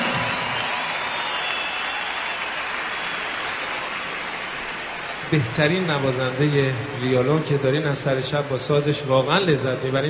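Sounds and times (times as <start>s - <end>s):
audience applause honoring an orchestra conductor: 0.0s - 9.7s
speech: 5.3s - 10.0s.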